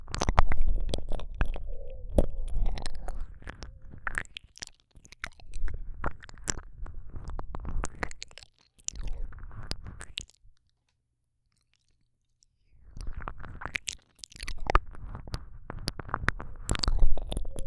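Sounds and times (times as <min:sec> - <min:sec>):
ASMR ear licking with the tongue: 0:00.0 - 0:08.2, 0:13.0 - 0:17.6.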